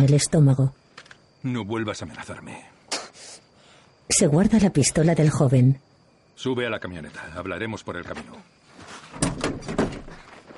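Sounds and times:
speech: 0.0 - 0.8, 1.4 - 2.8, 4.1 - 9.9
door opening: 9.1 - 10.4.

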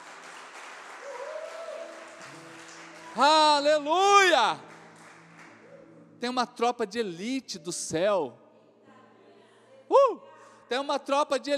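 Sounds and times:
audience applause: 0.0 - 5.7
speech: 3.2 - 4.7, 6.2 - 8.4, 10.7 - 11.5.

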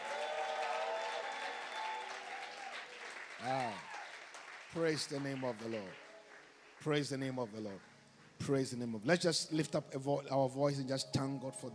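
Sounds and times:
audience hand clapping: 0.0 - 8.8
speech: 3.4 - 3.9, 4.7 - 6.0, 6.8 - 11.7.

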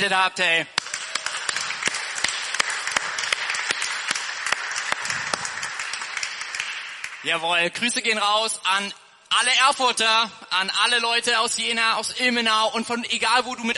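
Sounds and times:
speech: 0.0 - 0.8, 7.2 - 13.7
crowd applause: 0.8 - 7.3.

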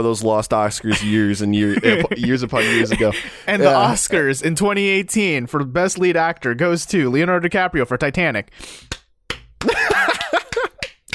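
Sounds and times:
speech: 0.0 - 9.0
laughter: 0.8 - 4.3, 9.6 - 11.1
lone person clapping: 8.8 - 11.1.

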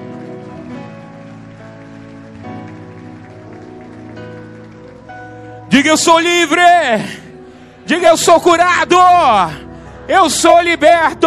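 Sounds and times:
audience applauding: 0.0 - 7.1
speech: 5.8 - 7.2, 7.9 - 11.2.

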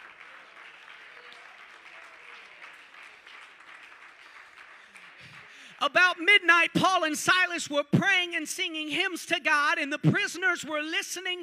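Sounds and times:
audience clapping hands: 0.0 - 6.3
speech: 5.8 - 11.4.

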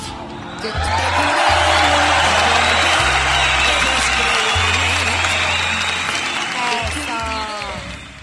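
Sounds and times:
crowd cheering: 0.0 - 8.2
audience applause: 0.5 - 8.2
whistles: 1.9 - 8.2.

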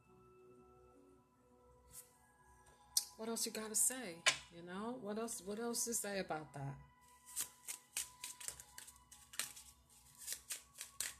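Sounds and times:
speech: 3.2 - 7.5
oracle love cards being handled and shuffled: 7.3 - 11.1.

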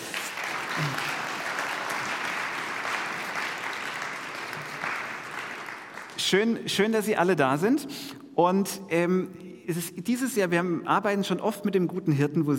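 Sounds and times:
audience applause: 0.0 - 6.3
speech: 0.8 - 1.1, 6.3 - 12.5.

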